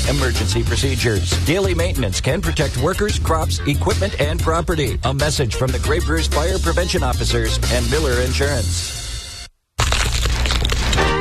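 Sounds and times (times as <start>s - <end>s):
speech: 0.1s - 9.0s
crunching bites into crispy chicken wings: 9.8s - 11.1s.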